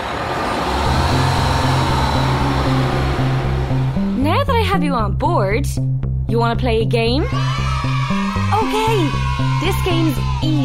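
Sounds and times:
bus engine revving and pulling away: 0.0 - 4.7
speech: 4.7 - 7.7, 8.6 - 10.6.

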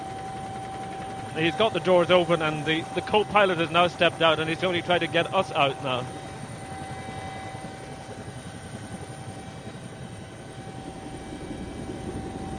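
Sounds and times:
helicopter rotors running on the ground: 0.0 - 12.5
helicopter engine whine: 0.6 - 12.5
speech: 1.4 - 6.2.

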